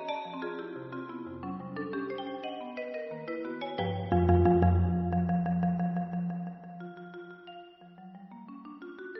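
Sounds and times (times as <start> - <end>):
marimba fantasy: 0.2 - 7.4.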